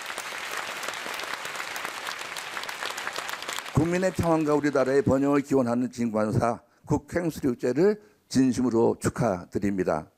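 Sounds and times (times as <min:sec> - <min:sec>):
audience applause welcoming a speaker: 0:00.0 - 0:05.3
speech: 0:03.8 - 0:10.1.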